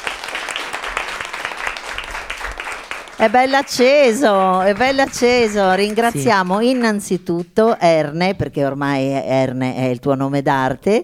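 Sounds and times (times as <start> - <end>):
audience applause: 0.0 - 7.1
speech: 3.2 - 11.0.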